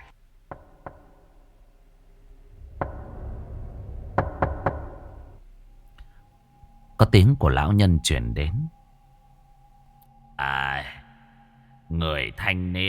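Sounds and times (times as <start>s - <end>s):
knocking on a door at night: 0.5s - 1.2s, 2.8s - 3.2s, 4.2s - 5.4s
speech: 7.0s - 8.8s, 11.9s - 12.8s.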